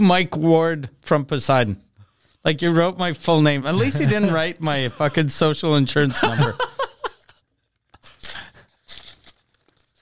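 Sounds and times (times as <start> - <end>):
speech: 0.0 - 6.7
laughter: 3.7 - 5.4, 6.0 - 7.4
soft paper rustling: 6.6 - 9.9
paper envelope ripped open by hand: 8.0 - 9.9.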